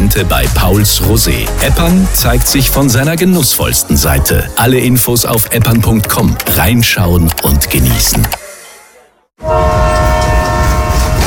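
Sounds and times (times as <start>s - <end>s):
speech: 0.2s - 8.4s
train horn blast on the Vinschgau railway: 9.4s - 11.2s.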